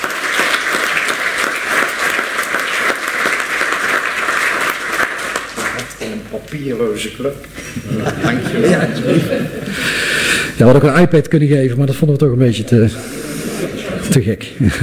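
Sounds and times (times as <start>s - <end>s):
council applause: 0.0s - 6.1s
speech: 6.3s - 10.0s, 10.6s - 13.3s, 14.1s - 14.8s
laughter: 7.6s - 10.1s, 12.9s - 14.8s.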